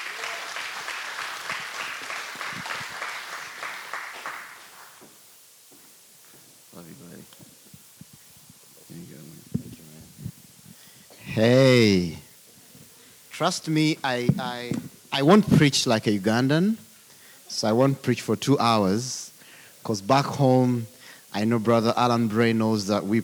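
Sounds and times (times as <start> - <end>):
church congregation applauding a guest pastor from Uganda: 0.0 - 5.2
speech: 11.4 - 12.2, 13.4 - 16.8, 17.5 - 19.2, 19.8 - 23.2.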